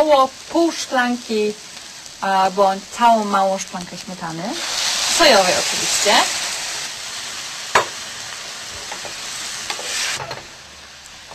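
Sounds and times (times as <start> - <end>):
speech: 0.0 - 6.4
mushrooms sizzling in a pan: 0.0 - 11.3
utensil clacking and scraping: 8.8 - 10.5.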